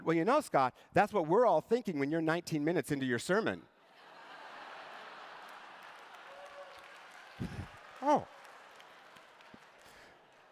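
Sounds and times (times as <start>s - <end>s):
speech: 0.1s - 3.7s
audience applause: 4.4s - 10.5s.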